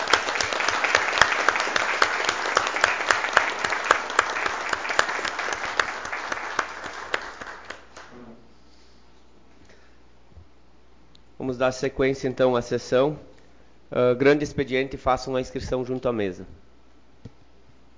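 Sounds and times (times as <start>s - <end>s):
applause: 0.0s - 8.2s
speech: 11.5s - 13.3s, 13.9s - 16.6s.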